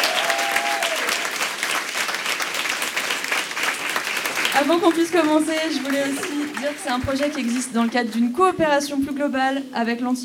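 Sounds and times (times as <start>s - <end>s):
audience applause: 0.0s - 7.9s
speech: 4.6s - 10.2s.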